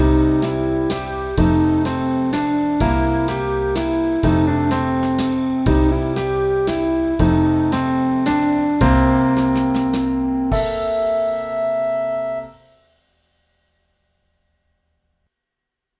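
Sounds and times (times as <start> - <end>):
blues in three-four time: 0.0 - 12.7.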